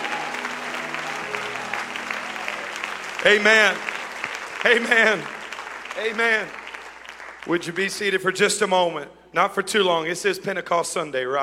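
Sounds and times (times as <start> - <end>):
audience clapping hands: 0.0 - 8.4
speech: 3.2 - 3.9, 4.6 - 5.4, 6.0 - 6.6, 7.4 - 11.4.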